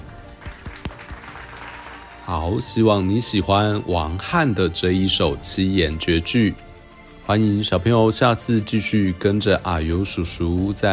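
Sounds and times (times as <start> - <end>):
applause: 0.0 - 2.7
speech: 2.3 - 6.7, 7.3 - 10.9.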